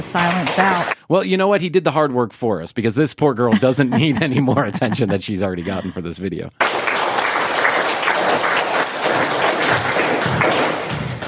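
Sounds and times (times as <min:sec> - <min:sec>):
smattering of applause: 0:00.0 - 0:01.0, 0:06.6 - 0:11.2
speech: 0:00.0 - 0:06.7
laughter: 0:03.5 - 0:06.4.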